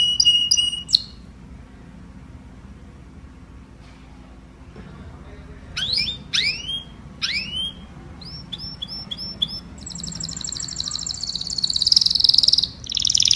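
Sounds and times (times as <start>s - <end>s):
domestic canary singing: 0.0s - 1.5s, 5.6s - 13.3s.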